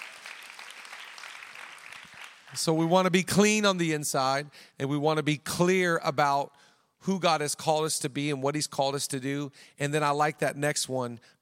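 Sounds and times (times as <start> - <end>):
audience clapping: 0.0 - 2.9
speech: 2.5 - 11.4.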